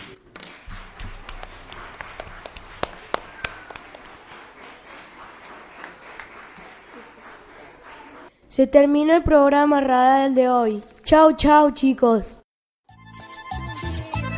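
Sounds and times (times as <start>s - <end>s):
applause: 0.0s - 8.3s
speech: 8.6s - 12.4s.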